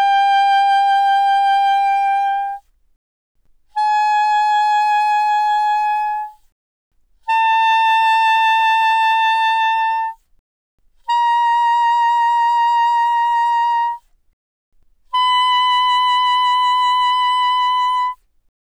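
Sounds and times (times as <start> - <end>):
soprano saxophone notes with vibrato played mezzo forte from C5 to B5: 0.0 - 2.6, 3.7 - 6.4, 7.2 - 10.2, 11.0 - 14.1, 15.1 - 18.2.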